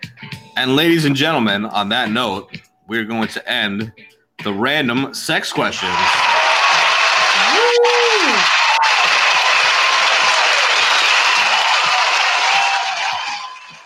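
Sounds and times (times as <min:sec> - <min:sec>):
speech: 0:00.2 - 0:06.2
audience clapping: 0:05.7 - 0:13.8.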